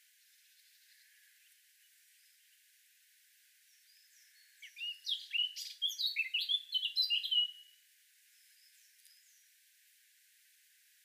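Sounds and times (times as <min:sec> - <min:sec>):
faint background hiss: 0:00.0 - 0:11.0
Eurasian blackcap singing: 0:03.9 - 0:07.7.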